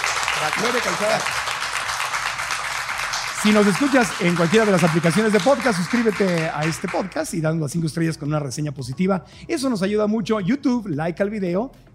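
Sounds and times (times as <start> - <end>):
audience applause: 0.0 - 7.2
speech: 0.4 - 1.5, 3.4 - 11.9.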